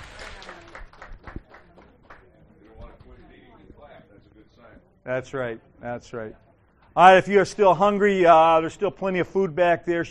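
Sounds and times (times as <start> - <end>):
audience applause: 0.0 - 2.2
speech: 5.0 - 10.0.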